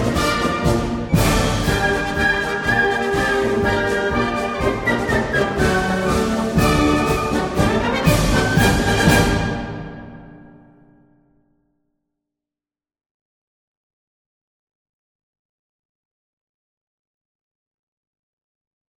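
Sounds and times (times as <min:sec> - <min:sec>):
Ukrainian march music: 0:00.0 - 0:11.0.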